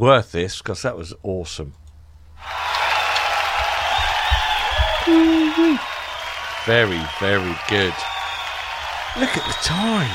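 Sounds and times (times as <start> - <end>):
speech: 0.0 - 1.8, 5.0 - 5.9, 6.6 - 8.2, 9.2 - 10.1
crowd applause: 2.4 - 10.1
person whooping: 3.7 - 5.9.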